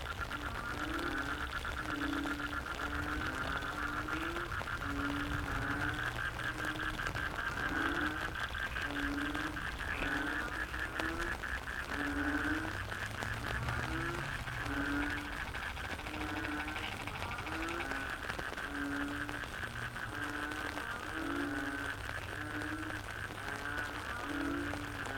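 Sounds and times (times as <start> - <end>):
frogs croaking in a chorus: 0.0 - 25.1
low rumbling: 11.2 - 20.0.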